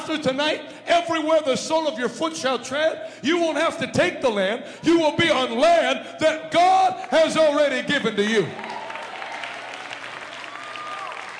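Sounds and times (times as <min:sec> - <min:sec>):
speech: 0:00.0 - 0:08.7
church congregation clapping during a worship service: 0:06.8 - 0:11.3.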